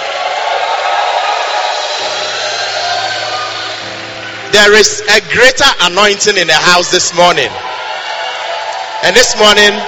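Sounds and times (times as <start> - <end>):
audience shouting: 0.0 - 4.5, 6.7 - 9.8
audience clapping hands: 0.0 - 4.8, 7.4 - 9.8
speech: 4.6 - 7.7, 9.0 - 9.8.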